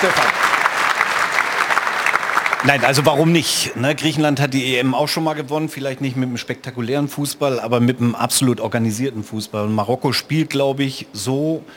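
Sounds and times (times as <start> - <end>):
speech: 0.0 - 0.4, 2.6 - 11.7
audience applause: 0.0 - 4.2.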